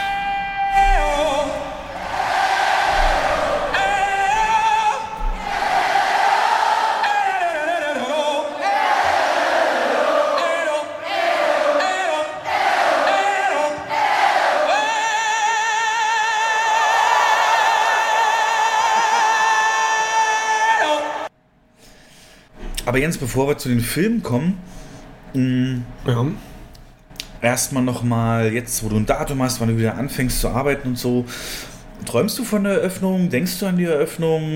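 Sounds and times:
crowd shouting and cheering: 0:00.0 - 0:07.8, 0:08.5 - 0:21.3
speech: 0:23.0 - 0:24.7, 0:25.3 - 0:26.5, 0:27.4 - 0:34.5.

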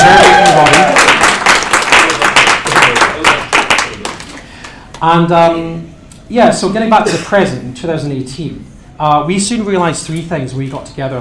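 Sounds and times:
audience applause: 0:00.0 - 0:04.6
speech: 0:05.0 - 0:11.1.

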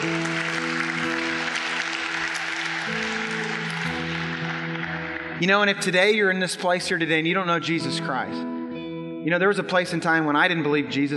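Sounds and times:
audience clapping: 0:00.0 - 0:06.8
sustained keyboard or organ chords: 0:00.0 - 0:11.1
speech: 0:05.4 - 0:08.5, 0:09.2 - 0:11.1.

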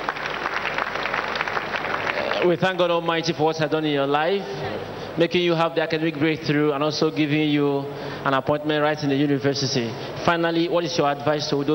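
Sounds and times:
audience clapping: 0:00.0 - 0:02.8
speech: 0:02.4 - 0:11.7.

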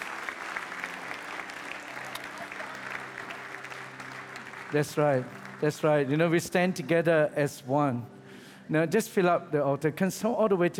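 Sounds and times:
church congregation applauding to welcome people to the front: 0:00.0 - 0:06.3
speech: 0:04.7 - 0:10.7.

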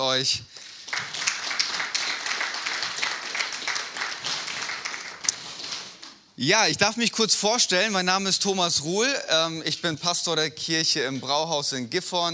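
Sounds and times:
speech: 0:00.1 - 0:01.2, 0:06.4 - 0:12.3
audience applause: 0:00.7 - 0:06.0.

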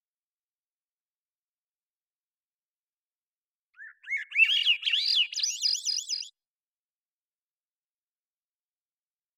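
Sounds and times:
Swainson's thrush whistled song: 0:03.8 - 0:06.3.

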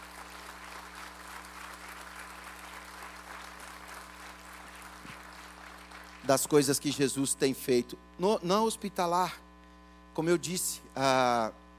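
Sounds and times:
audience applause: 0:00.0 - 0:06.8
speech: 0:06.3 - 0:09.4, 0:10.2 - 0:11.6.

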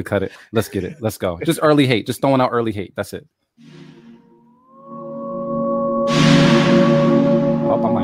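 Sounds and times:
speech: 0:00.0 - 0:03.8
hip-hop instrumental droning synth chord: 0:03.6 - 0:08.0.

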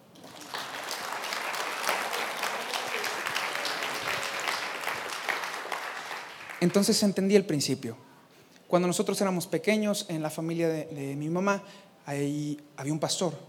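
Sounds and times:
audience applause: 0:00.0 - 0:06.9
speech: 0:06.6 - 0:08.1, 0:08.7 - 0:13.4.

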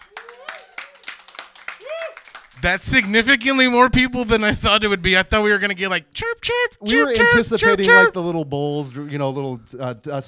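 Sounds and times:
audience clapping: 0:00.0 - 0:03.5
speech: 0:02.6 - 0:10.2
voices calling out: 0:06.5 - 0:08.2.

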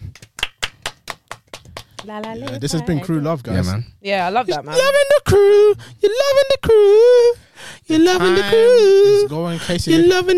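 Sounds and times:
applause: 0:00.0 - 0:03.0
speech: 0:02.0 - 0:10.3.

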